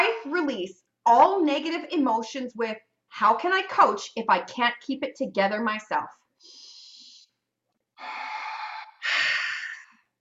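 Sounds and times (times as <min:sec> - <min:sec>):
speech: 0:00.0 - 0:06.6
person breathing in during a guided breathing exercise: 0:08.0 - 0:10.1.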